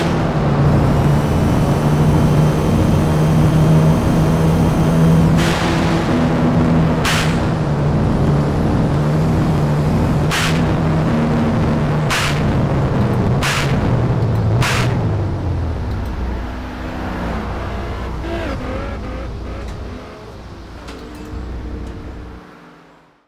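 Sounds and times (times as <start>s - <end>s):
Nissan Skyline GT-R R33 Nismo engine: 0.0s - 23.1s.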